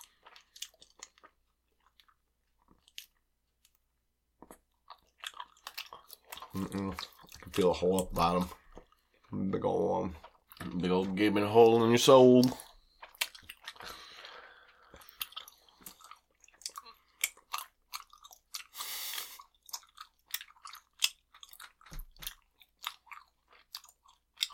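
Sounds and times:
chewing gum while trying to blow bubbles: 0.0 - 3.8, 4.4 - 24.5
speech: 6.6 - 8.6, 9.3 - 10.2, 10.8 - 12.6
breathy puff of air: 18.8 - 19.4.

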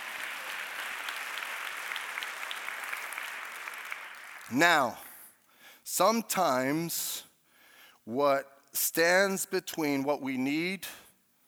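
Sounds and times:
audience clapping: 0.0 - 5.3
speech: 4.5 - 5.0, 5.8 - 7.3, 8.0 - 11.0.

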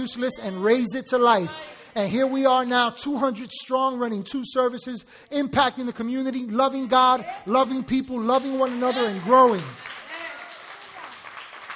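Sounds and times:
speech: 0.0 - 9.9
audience clapping: 8.2 - 11.7.

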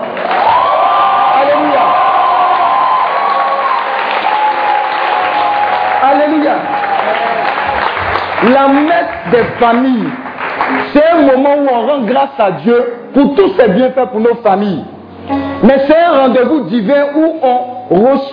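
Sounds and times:
audience cheering with loud whoops: 0.0 - 8.3
audience clapping: 0.0 - 12.2
speech: 8.4 - 18.3.

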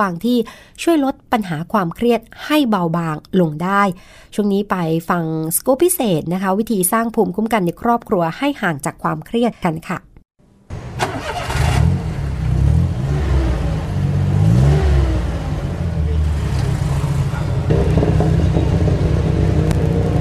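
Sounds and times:
speech: 0.0 - 10.1
busy traffic hum: 10.7 - 20.1
tuk-tuk engine pulling away: 10.7 - 20.1.

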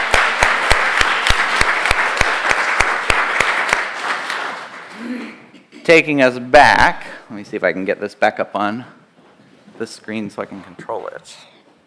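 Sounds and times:
audience clapping hands: 0.0 - 5.2
speech: 5.9 - 9.0, 9.8 - 11.5.

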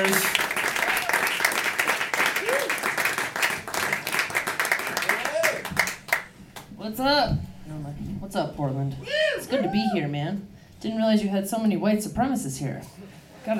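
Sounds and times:
crowd applauding: 0.0 - 6.3
crowd whooping: 0.1 - 3.1, 5.0 - 5.9, 9.0 - 10.1
speech: 7.0 - 7.4, 8.4 - 13.5.

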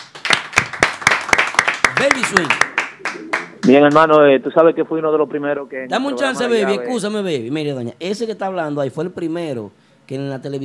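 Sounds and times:
applause: 0.0 - 4.0
speech: 2.0 - 10.6.

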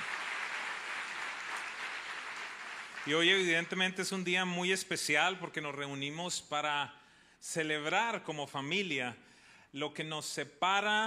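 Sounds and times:
applause for first-time visitors: 0.0 - 4.2
speech: 3.0 - 11.0.

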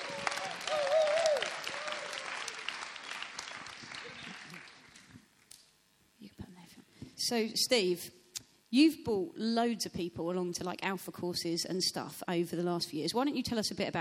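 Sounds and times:
audience clapping: 0.0 - 5.6
speech: 7.2 - 14.0.

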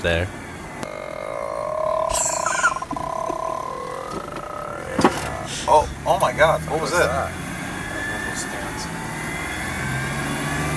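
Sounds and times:
speech: 0.0 - 0.4, 5.7 - 7.4
faint high chirps: 0.8 - 5.0
car driving with low engine and road rumble: 4.4 - 10.7.

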